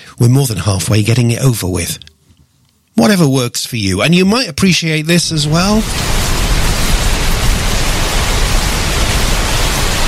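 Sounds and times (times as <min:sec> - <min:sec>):
speech: 0:00.2 - 0:02.1, 0:03.0 - 0:06.1
rain falling: 0:05.3 - 0:10.0.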